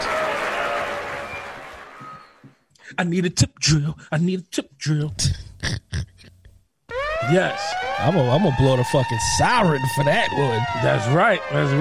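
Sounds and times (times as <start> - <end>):
round of applause: 0.0 - 2.4
speech: 3.0 - 5.8, 7.3 - 11.7.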